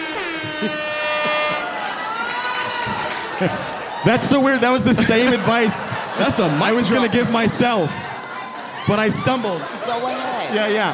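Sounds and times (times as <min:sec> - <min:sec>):
air horn: 0:00.0 - 0:02.0
laughter: 0:00.2 - 0:10.6
speech: 0:00.6 - 0:00.9, 0:03.4 - 0:08.0, 0:08.8 - 0:10.9.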